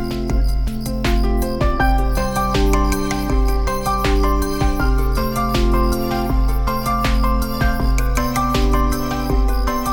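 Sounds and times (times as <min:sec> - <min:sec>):
cicada buzzing call with high rasping trill: 0:00.0 - 0:09.9.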